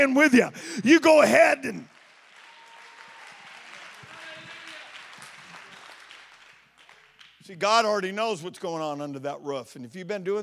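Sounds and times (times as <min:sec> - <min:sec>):
speech: 0:00.0 - 0:01.9, 0:07.5 - 0:10.4
audience clapping hands: 0:01.1 - 0:08.0.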